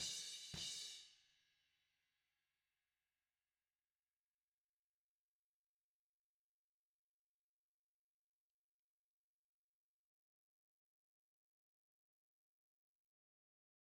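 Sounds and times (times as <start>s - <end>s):
snare drum: 0.0s - 1.0s.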